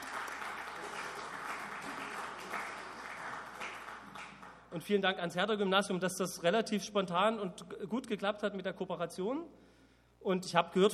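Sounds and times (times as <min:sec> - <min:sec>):
audience applause: 0:00.0 - 0:04.7
speech: 0:04.7 - 0:09.6, 0:10.2 - 0:10.9.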